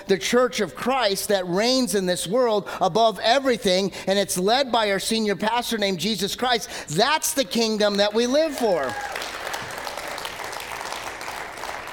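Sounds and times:
speech: 0:00.1 - 0:09.2
audience clapping: 0:07.9 - 0:11.9.

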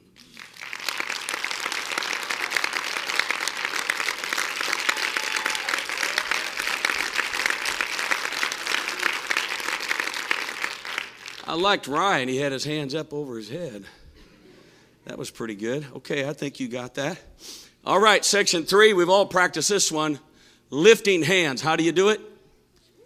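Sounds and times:
audience clapping hands: 0:00.0 - 0:11.7
speech: 0:11.6 - 0:14.0, 0:15.1 - 0:22.3.

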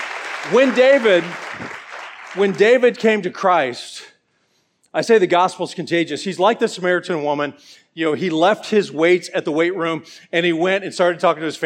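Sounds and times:
crowd clapping: 0:00.0 - 0:03.0
speech: 0:00.4 - 0:04.1, 0:04.9 - 0:11.6.

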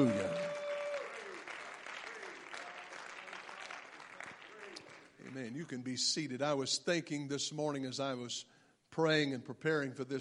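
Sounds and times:
audience clapping hands: 0:00.0 - 0:05.6
speech: 0:05.4 - 0:10.2.

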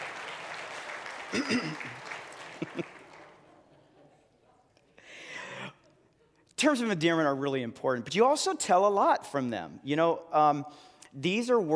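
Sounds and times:
audience applause: 0:00.0 - 0:03.6
speech: 0:01.3 - 0:03.0, 0:06.6 - 0:11.7.

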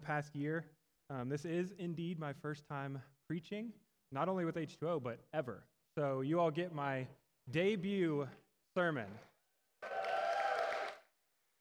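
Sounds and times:
speech: 0:00.0 - 0:10.0
audience clapping: 0:09.8 - 0:11.1.

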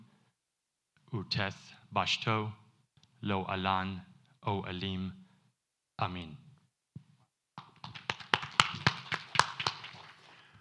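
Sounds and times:
speech: 0:01.1 - 0:02.6, 0:03.2 - 0:05.2, 0:06.0 - 0:06.4
audience applauding: 0:07.8 - 0:10.3.

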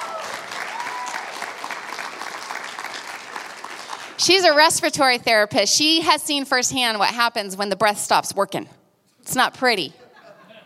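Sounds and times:
audience round of applause: 0:00.0 - 0:04.2
speech: 0:04.2 - 0:10.0
laughter: 0:10.0 - 0:10.6.

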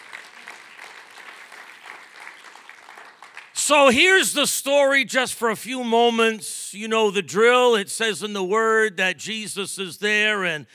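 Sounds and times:
audience applause: 0:00.0 - 0:04.0
speech: 0:03.7 - 0:10.7.

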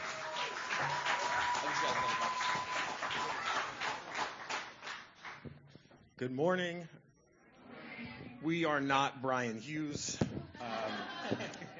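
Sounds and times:
audience applause: 0:00.0 - 0:05.4
speech: 0:01.7 - 0:03.4, 0:06.2 - 0:07.0, 0:08.4 - 0:11.6
laughter: 0:10.6 - 0:11.7.

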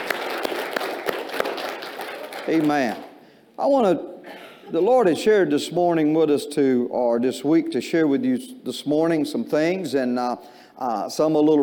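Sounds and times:
audience clapping hands in praise: 0:00.0 - 0:03.2
speech: 0:02.5 - 0:04.1, 0:04.7 - 0:11.6.

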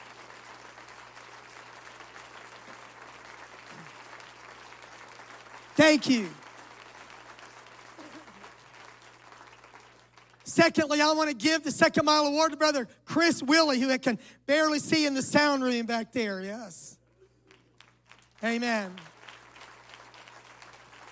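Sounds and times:
room full of people applauding: 0:00.0 - 0:10.5, 0:17.4 - 0:21.1
speech: 0:05.8 - 0:06.4, 0:10.6 - 0:16.9, 0:18.4 - 0:19.1.

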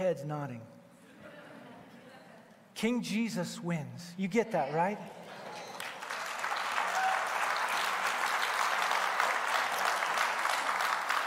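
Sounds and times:
speech: 0:00.0 - 0:00.8, 0:02.8 - 0:05.4
audience applause: 0:05.2 - 0:11.2.

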